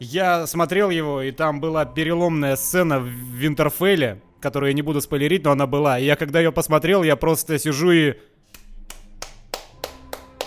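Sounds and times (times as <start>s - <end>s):
speech: 0.0s - 8.4s
single person clapping hands alone in a flat: 8.5s - 10.4s.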